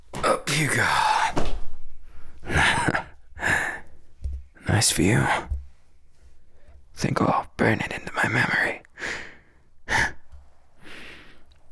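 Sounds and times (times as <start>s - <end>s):
speech: 0.6s - 1.1s, 4.8s - 5.5s, 7.0s - 8.8s
close breathing: 0.8s - 4.2s, 9.0s - 11.6s.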